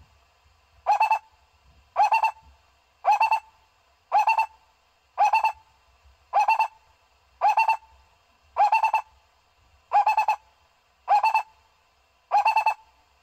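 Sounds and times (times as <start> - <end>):
owl hooting: 0.9 - 1.3, 2.0 - 3.5, 4.1 - 4.6, 5.2 - 5.6, 6.3 - 6.8, 7.4 - 7.9, 8.6 - 9.1, 9.9 - 10.5, 11.1 - 11.6, 12.3 - 12.9.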